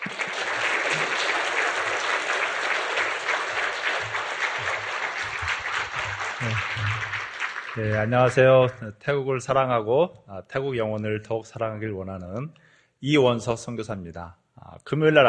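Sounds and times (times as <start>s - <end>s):
audience applause: 0.0s - 8.8s
speech: 7.8s - 15.2s.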